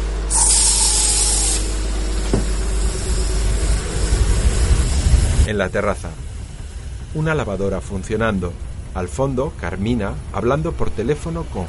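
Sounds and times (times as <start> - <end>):
hissing burst of aerosol spray from an air freshener: 0.3 - 5.2
speech: 5.5 - 6.3, 7.1 - 11.6.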